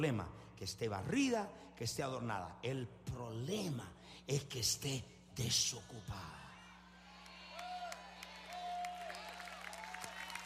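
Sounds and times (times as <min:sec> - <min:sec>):
speech: 0:00.0 - 0:06.5
loud applause from audience: 0:07.5 - 0:10.4.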